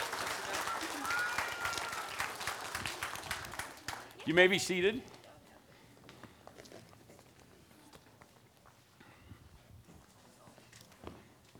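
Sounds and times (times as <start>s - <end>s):
audience applauding: 0.0s - 4.5s
speech: 4.2s - 5.2s.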